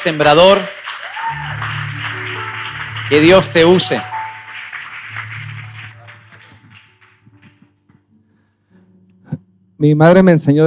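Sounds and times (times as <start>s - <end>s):
speech: 0.0s - 0.8s, 3.1s - 4.1s, 9.8s - 10.6s
audience clapping to welcome a guest: 0.0s - 8.1s
low musical tone: 1.4s - 10.3s.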